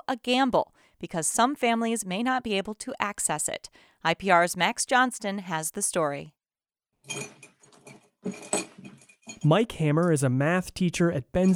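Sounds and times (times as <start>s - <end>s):
speech: 0.1s - 6.4s, 7.1s - 7.5s, 8.2s - 8.7s, 9.4s - 11.5s
pens clattering: 7.1s - 9.5s
rustling: 7.1s - 9.5s.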